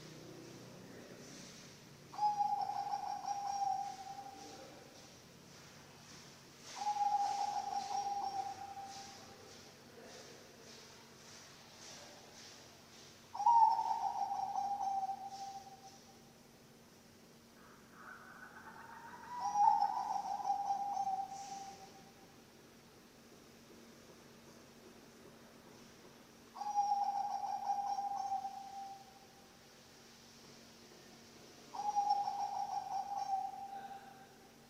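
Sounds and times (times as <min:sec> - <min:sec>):
faint steady hum: 0:00.0 - 0:34.6
zebra dove cooing: 0:02.1 - 0:05.0, 0:06.7 - 0:09.6, 0:13.4 - 0:16.0, 0:17.6 - 0:22.1, 0:26.6 - 0:29.2, 0:31.7 - 0:34.3.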